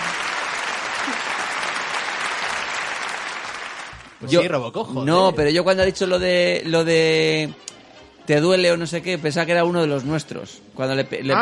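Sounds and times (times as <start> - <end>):
applause: 0.0 - 4.4
speech: 4.2 - 7.7, 8.3 - 11.4.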